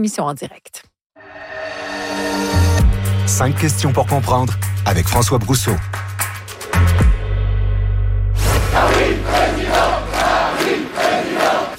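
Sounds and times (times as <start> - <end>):
speech: 0.0 - 0.9, 3.3 - 6.0
bass-heavy music at a Pas-de-Calais rally: 2.1 - 10.3
rally crowd cheering Marine Le Pen in Pas-de-Calais: 8.4 - 11.7.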